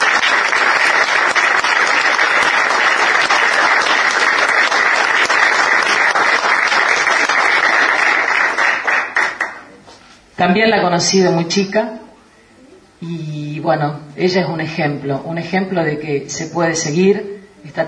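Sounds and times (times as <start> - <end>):
audience applause: 0.0 - 9.8
speech: 10.4 - 12.0, 13.0 - 17.8.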